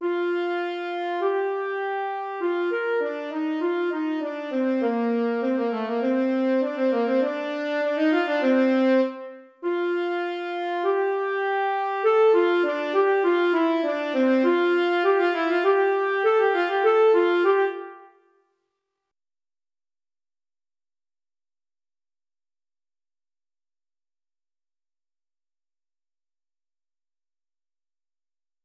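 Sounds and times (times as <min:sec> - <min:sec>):
alto saxophone: 0:00.0 - 0:18.3.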